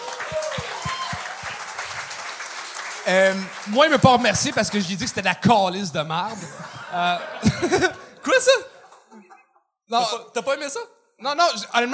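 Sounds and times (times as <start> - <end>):
audience applause: 0.0 - 5.5
speech: 3.1 - 8.7, 9.9 - 11.9
laughter: 6.1 - 10.7.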